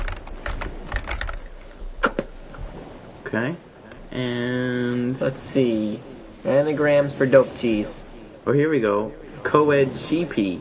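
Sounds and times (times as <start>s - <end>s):
typing on a computer keyboard: 0.0s - 1.5s
speech: 3.3s - 10.6s.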